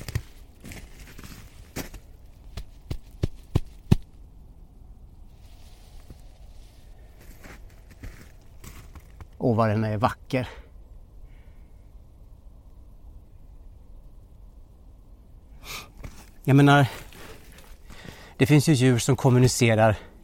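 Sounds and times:
faint outdoor rustling: 0.0 - 20.2
hand patting a moss-covered rock slab: 2.5 - 4.1
speech: 9.4 - 10.6, 16.5 - 17.1, 18.4 - 20.1.

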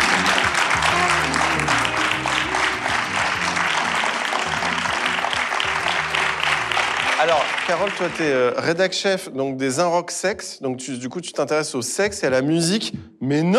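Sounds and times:
low stepping musical bass line: 0.0 - 7.2
audience applause: 0.0 - 8.7
speech: 7.3 - 13.5.

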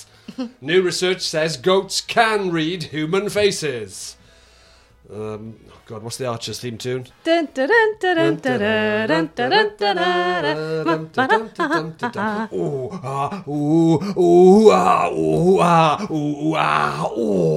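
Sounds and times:
speech: 0.4 - 4.2, 5.1 - 17.5
voice imitating sex noises, groaning and moaning: 10.5 - 17.5.

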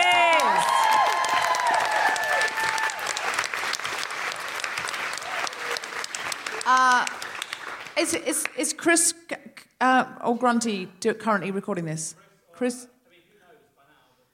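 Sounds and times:
crowd whooping and cheering: 0.0 - 7.2
crowd applauding: 0.0 - 8.7
speech: 8.0 - 12.9.

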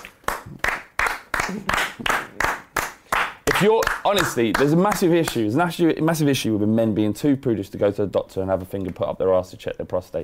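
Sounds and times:
audience clapping in a steady rhythm: 0.0 - 5.7
speech: 3.6 - 10.2.

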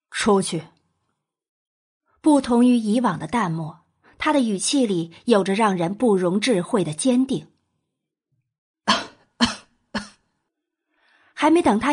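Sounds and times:
speech: 0.2 - 0.8, 2.2 - 7.5, 11.4 - 11.9
suppressed coughing: 8.9 - 10.3.

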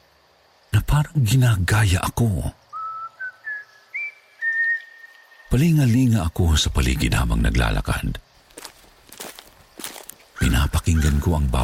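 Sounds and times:
speech: 1.0 - 2.6, 5.5 - 8.2, 10.9 - 11.6
person whistling a tune: 2.8 - 5.0.

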